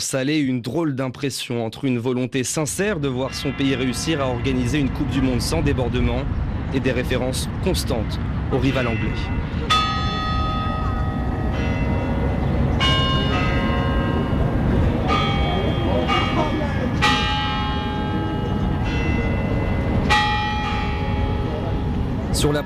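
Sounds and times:
speech: 0:00.0 - 0:09.8, 0:22.4 - 0:22.6
low murmur: 0:08.2 - 0:22.6
Kremlin clock chimes playing national anthem: 0:08.7 - 0:22.6.

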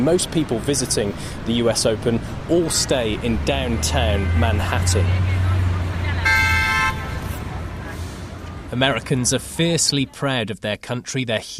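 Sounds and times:
speech: 0:00.0 - 0:05.4, 0:08.7 - 0:11.5
New York street traffic rumble: 0:00.0 - 0:11.5
car horn blast: 0:06.2 - 0:07.3.

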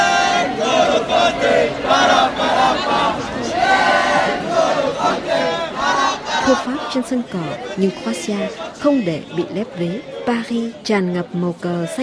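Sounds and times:
huge crowd cheering on the Champs-Élysées in Paris after World Cup win: 0:00.0 - 0:12.0
speech: 0:06.5 - 0:12.0.

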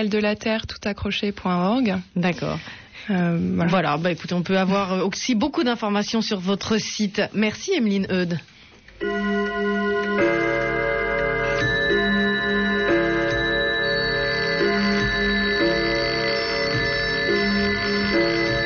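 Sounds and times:
speech: 0:00.0 - 0:09.7
alarm clocks ringing: 0:09.0 - 0:18.6.

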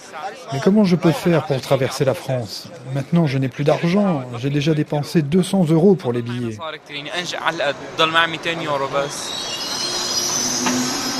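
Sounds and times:
speech: 0:00.1 - 0:09.7
night train rumbling into station: 0:07.2 - 0:11.1
train brake squeals: 0:07.7 - 0:11.1.

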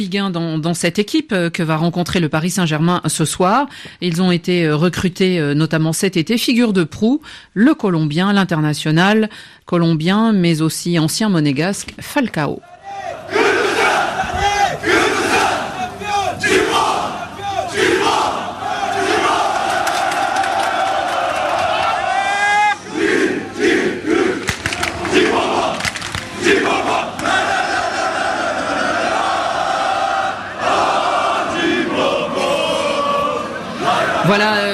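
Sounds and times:
speech: 0:00.0 - 0:13.3
thousands of football fans in Galatasaray's stadium roaring and chanting to welcome Falcao: 0:12.6 - 0:34.7.

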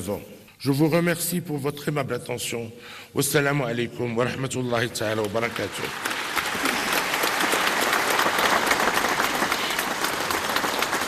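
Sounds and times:
speech: 0:00.0 - 0:06.2
large crowd applauding after a speech: 0:05.2 - 0:11.0.

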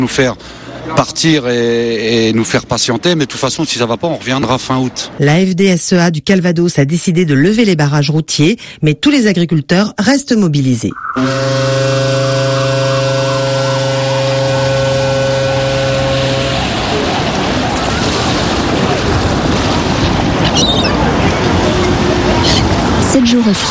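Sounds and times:
seaside waves and surf: 0:00.0 - 0:05.9, 0:11.0 - 0:23.6
speech: 0:00.0 - 0:12.3
seaside wind: 0:00.0 - 0:23.6
brief sharper splash: 0:11.0 - 0:23.6.

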